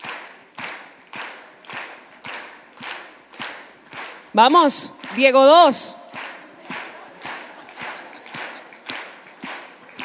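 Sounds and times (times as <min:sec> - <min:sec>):
crowd noise at a live church worship practice: 0:00.0 - 0:10.0
people clapping along to a praise song at a live church worship practice: 0:00.0 - 0:10.0
speech: 0:04.4 - 0:06.0
laughter: 0:06.3 - 0:10.0.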